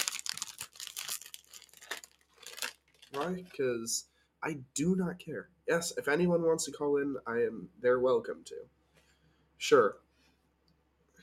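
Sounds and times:
crinkly potato chip bag torn open and rustled: 0:00.0 - 0:03.5
speech: 0:03.1 - 0:08.8, 0:09.7 - 0:10.0.

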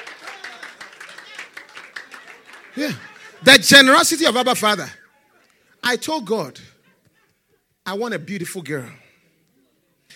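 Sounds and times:
church congregation clapping for Jesus: 0:00.0 - 0:04.5
speech: 0:02.8 - 0:05.0, 0:05.8 - 0:06.7, 0:07.9 - 0:09.0.

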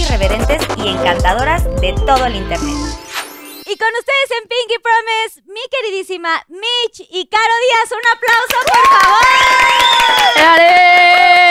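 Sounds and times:
speech: 0:00.1 - 0:03.0, 0:03.7 - 0:11.4
audience applause: 0:08.4 - 0:11.4.

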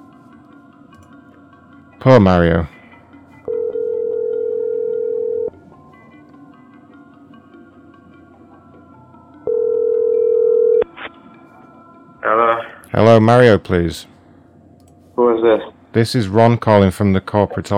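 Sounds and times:
low hum: 0:00.0 - 0:17.7
speech: 0:02.0 - 0:02.8, 0:13.2 - 0:14.1, 0:15.4 - 0:17.7
telephone dial tone: 0:03.5 - 0:05.5, 0:09.5 - 0:10.9.

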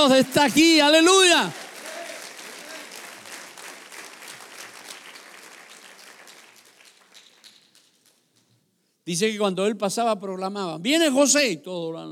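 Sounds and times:
speech: 0:00.0 - 0:01.6, 0:09.1 - 0:12.1
audience applauding: 0:00.6 - 0:08.5.

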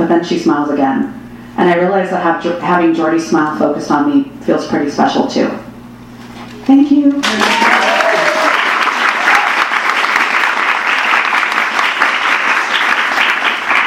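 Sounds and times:
speech: 0:00.1 - 0:05.6, 0:06.7 - 0:08.0
audience applause: 0:07.2 - 0:13.8.

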